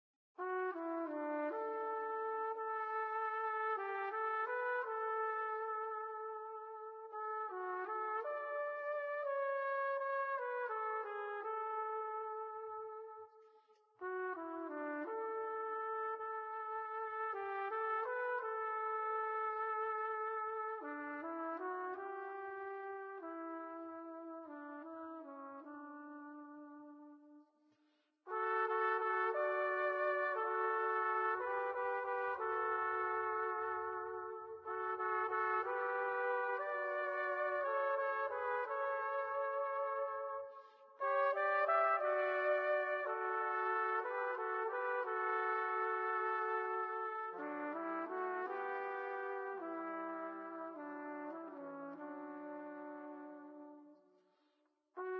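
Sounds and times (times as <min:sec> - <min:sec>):
trumpet: 0:00.4 - 0:55.1.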